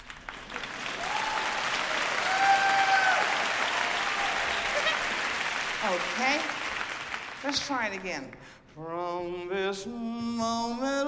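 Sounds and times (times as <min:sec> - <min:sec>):
audience clapping: 0:00.0 - 0:08.6
speech: 0:05.9 - 0:06.6, 0:07.4 - 0:11.0.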